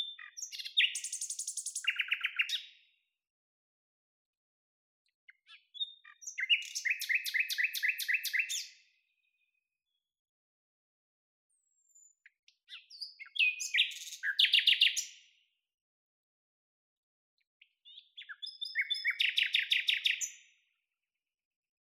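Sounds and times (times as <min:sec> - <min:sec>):
common nightingale song: 0:00.0 - 0:02.8, 0:05.3 - 0:08.8, 0:11.7 - 0:15.2, 0:17.9 - 0:20.5.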